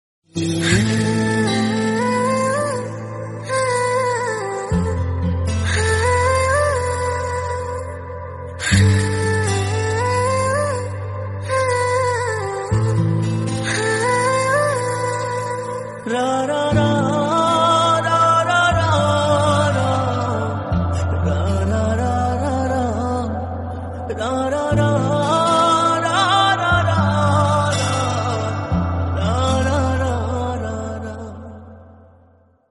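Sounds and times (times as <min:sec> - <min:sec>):
Bengali background music: 0:00.4 - 0:31.8.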